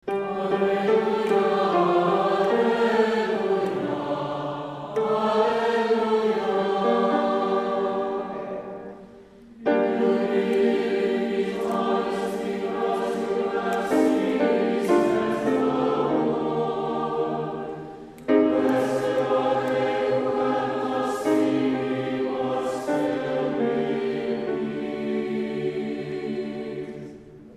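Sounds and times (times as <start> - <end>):
Easter gospel acclamation singing: 0.0 - 27.5.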